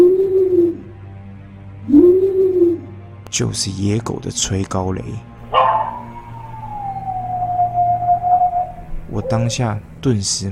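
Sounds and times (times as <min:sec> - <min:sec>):
owl hooting: 0:00.0 - 0:00.9, 0:01.9 - 0:02.9, 0:05.4 - 0:09.8
speech: 0:03.3 - 0:05.3, 0:09.2 - 0:10.4.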